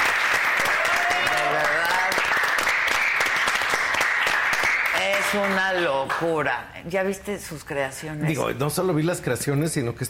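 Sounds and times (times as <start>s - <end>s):
audience applause: 0.0s - 6.3s
speech: 5.3s - 10.0s.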